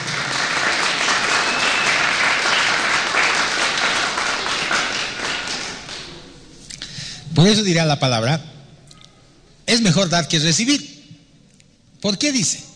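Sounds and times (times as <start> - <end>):
audience applause: 0.0 - 6.3
speech: 7.4 - 8.5, 9.7 - 10.9, 12.0 - 12.7.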